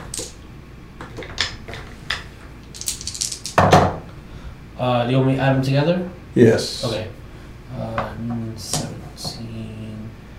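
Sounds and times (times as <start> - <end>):
dice clattering across a hard surface: 0.0 - 0.4, 1.0 - 3.7
speech: 4.8 - 8.8.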